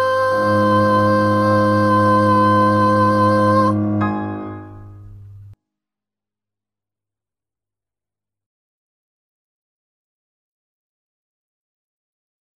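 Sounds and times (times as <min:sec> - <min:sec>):
piano: 0:00.0 - 0:05.6
tenor singing: 0:00.0 - 0:05.6.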